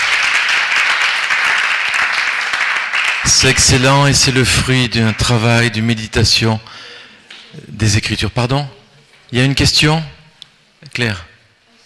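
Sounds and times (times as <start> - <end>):
audience applause: 0.0 - 5.7
speech: 3.3 - 6.9, 7.6 - 10.2, 10.8 - 11.3.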